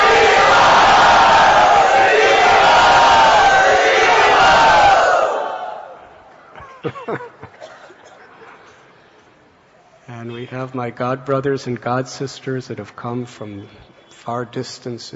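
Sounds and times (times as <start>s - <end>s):
crowd cheering and shouting loudly in welcome: 0.0s - 6.1s
speech: 6.8s - 7.3s, 10.2s - 15.1s.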